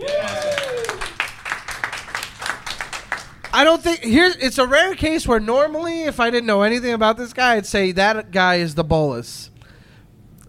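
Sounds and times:
audience clapping: 0.0 - 4.0
speech: 3.6 - 9.5.

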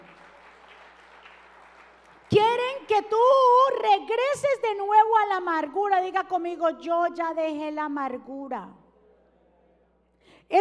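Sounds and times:
audience applauding: 0.0 - 2.3
speech: 2.3 - 8.8.

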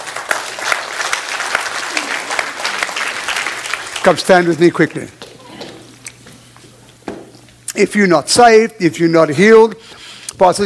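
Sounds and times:
audience clapping hands: 0.0 - 6.1
speech: 4.0 - 5.2, 7.8 - 10.6.

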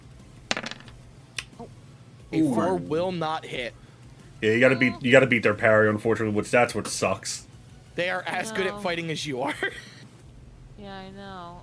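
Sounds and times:
dice rolled for an attack roll in a tabletop role-playing game: 0.5 - 1.0
speech: 2.3 - 3.8, 4.4 - 9.9, 10.8 - 11.6.

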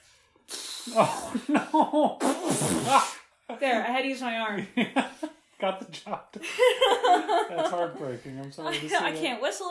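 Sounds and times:
mouth-blown raspberry fart noise: 0.5 - 1.4, 2.1 - 3.3
speech: 0.9 - 9.6
laughter: 6.4 - 9.1.

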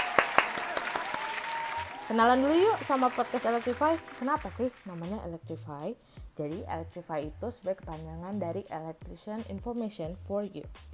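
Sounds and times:
sharp hand claps: 0.0 - 5.1
speech: 2.1 - 10.9.

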